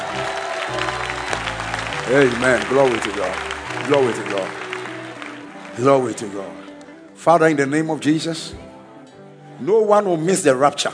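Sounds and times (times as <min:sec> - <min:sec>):
audience clapping: 0:00.0 - 0:07.1
speech: 0:02.1 - 0:04.6, 0:05.8 - 0:08.7, 0:09.6 - 0:10.9.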